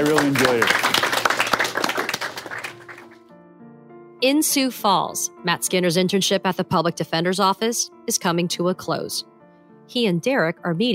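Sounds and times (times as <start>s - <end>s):
speech: 0.0s - 0.8s, 4.2s - 9.3s, 9.9s - 10.9s
crowd applauding: 0.0s - 3.3s.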